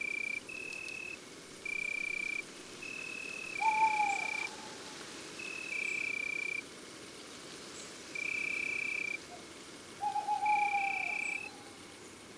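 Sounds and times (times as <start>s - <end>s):
female tawny owl calling in woods and forests: 0.2s - 6.1s, 8.2s - 11.9s.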